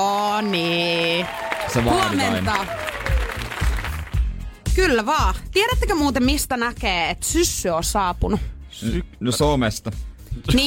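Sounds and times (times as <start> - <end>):
speech: 0.0 - 2.9, 4.8 - 10.6
applause: 0.0 - 4.4.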